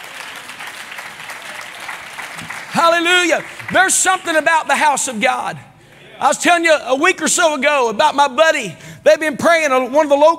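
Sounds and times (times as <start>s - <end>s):
audience clapping: 0.0s - 5.2s
speech: 2.8s - 10.3s.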